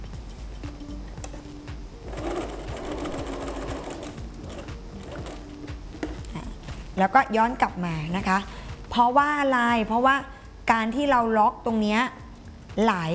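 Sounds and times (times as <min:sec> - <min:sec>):
sewing machine stitching a bag onto an apron: 0:02.0 - 0:05.5
speech: 0:07.0 - 0:12.2, 0:12.8 - 0:13.1.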